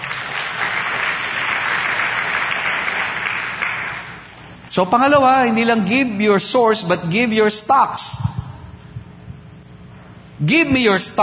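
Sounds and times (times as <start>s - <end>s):
church congregation applause: 0.0s - 4.5s
speech: 4.7s - 8.4s, 10.4s - 11.2s.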